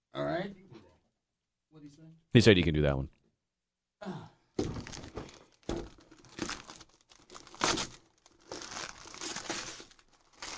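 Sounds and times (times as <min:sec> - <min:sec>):
speech: 0:01.8 - 0:03.2, 0:04.0 - 0:04.2
gift wrapping paper tearing and crinkling: 0:04.7 - 0:10.5.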